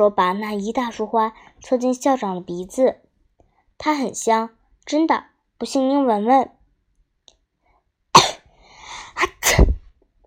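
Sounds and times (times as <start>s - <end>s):
speech: 0.0s - 3.0s, 3.8s - 6.6s
person sneezing: 8.2s - 9.8s.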